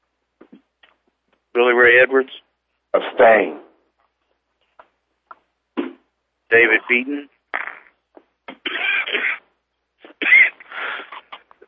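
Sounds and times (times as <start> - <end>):
speech: 1.6 - 3.6, 6.5 - 7.3
person coughing: 8.5 - 9.4, 10.0 - 11.3.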